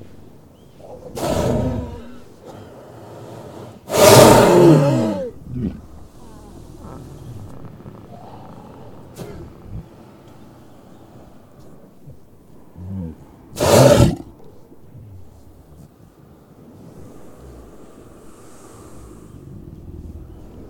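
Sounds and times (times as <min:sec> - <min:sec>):
walrus roaring: 0:00.8 - 0:09.9, 0:12.8 - 0:15.4
walrus low grunts: 0:03.9 - 0:10.0, 0:12.0 - 0:15.9.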